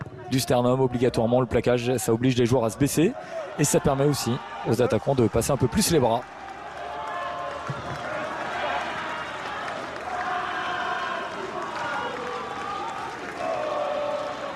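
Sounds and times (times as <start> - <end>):
commentator speaking: 0.3 - 6.2
speech: 0.3 - 6.4
Argentine rugby supporters chanting in the stadium: 7.9 - 14.5.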